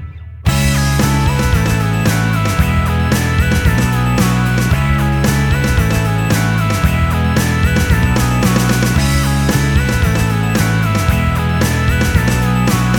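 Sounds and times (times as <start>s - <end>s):
cheerful background music: 0.5s - 12.9s.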